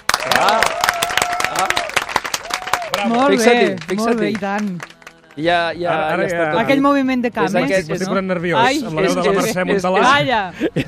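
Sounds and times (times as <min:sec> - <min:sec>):
audience applause: 0:00.0 - 0:05.7
speech: 0:00.2 - 0:00.8, 0:03.0 - 0:10.8.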